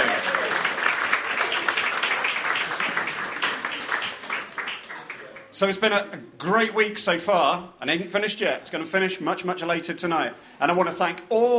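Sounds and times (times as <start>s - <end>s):
audience applause: 0.0s - 5.5s
speech: 5.6s - 11.5s.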